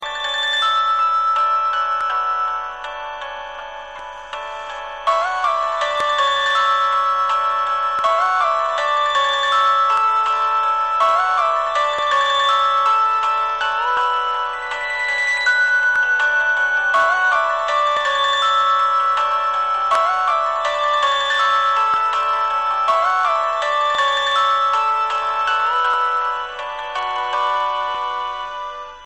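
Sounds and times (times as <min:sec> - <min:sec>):
caller tune music: 0:00.0 - 0:29.0.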